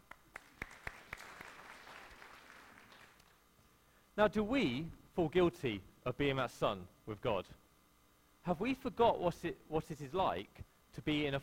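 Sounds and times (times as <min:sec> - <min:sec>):
audience clapping: 0:00.0 - 0:03.4
speech: 0:04.2 - 0:07.6, 0:08.4 - 0:11.4.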